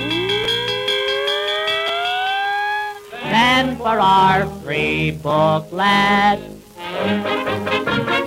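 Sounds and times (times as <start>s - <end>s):
fire engine siren: 0.0s - 3.4s
speech: 3.6s - 8.1s.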